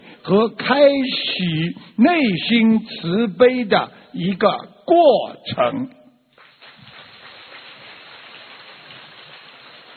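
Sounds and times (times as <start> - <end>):
speech: 0.2 - 6.0
sparse scattered applause: 6.4 - 9.9.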